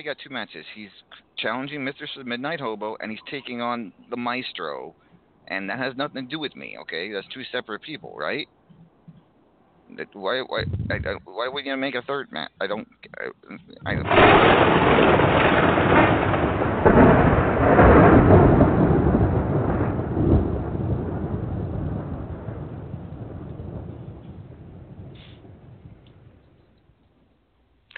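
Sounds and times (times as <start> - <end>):
speech: 0.0 - 8.6, 9.9 - 15.4
thunder sound effect: 10.6 - 11.3, 13.8 - 26.7.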